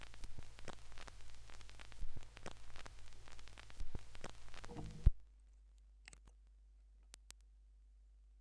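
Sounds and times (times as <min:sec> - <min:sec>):
vinyl record noise: 0:00.0 - 0:05.3.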